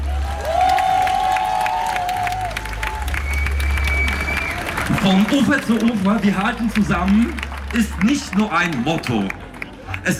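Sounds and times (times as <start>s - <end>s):
audience applause: 0.0s - 10.1s
sustained whistle-like tones: 3.2s - 4.6s
speech: 5.0s - 9.4s, 10.0s - 10.1s.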